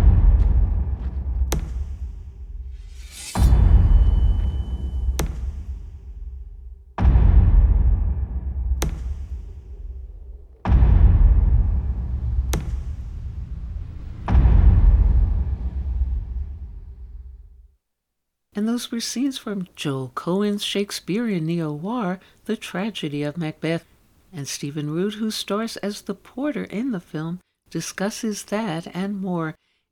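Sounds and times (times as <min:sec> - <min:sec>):
sharp cracks: 0:00.0 - 0:03.4, 0:04.1 - 0:17.2
heavy knocking: 0:00.0 - 0:17.2
speech: 0:18.8 - 0:29.9.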